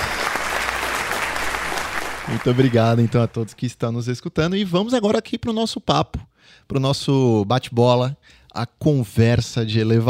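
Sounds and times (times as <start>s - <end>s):
applause sound effect: 0.0s - 3.6s
speech: 2.3s - 10.0s.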